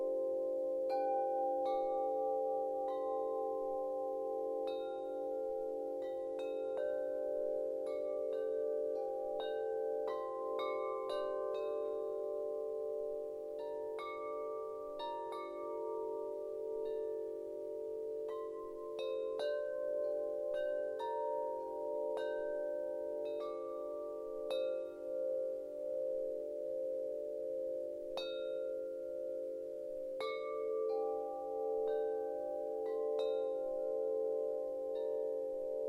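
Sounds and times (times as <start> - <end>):
serene wind chimes: 0.0 - 35.8.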